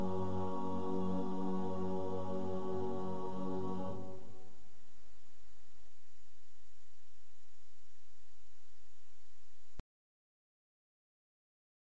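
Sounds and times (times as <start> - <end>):
choir singing a lullaby: 0.0 - 4.7.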